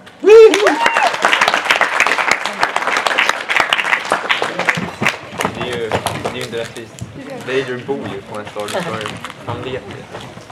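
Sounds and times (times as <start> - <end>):
high whoop or cheer: 0.2 - 1.4
audience applause: 0.2 - 6.5
speech: 6.6 - 10.5.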